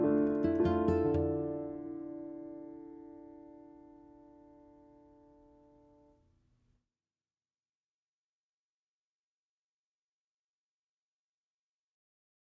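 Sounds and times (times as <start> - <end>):
guitar with reverb: 0.0 - 5.7.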